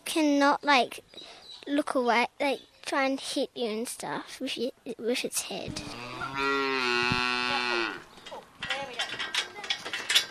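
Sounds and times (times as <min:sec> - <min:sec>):
speech: 0:00.1 - 0:06.1
calf mooing: 0:05.8 - 0:08.1.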